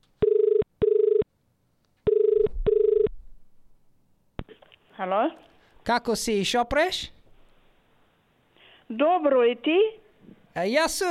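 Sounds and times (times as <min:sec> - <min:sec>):
phone line ringing: 0:00.2 - 0:01.2, 0:02.1 - 0:03.1
speech: 0:05.0 - 0:07.2, 0:08.9 - 0:10.0, 0:10.6 - 0:11.0.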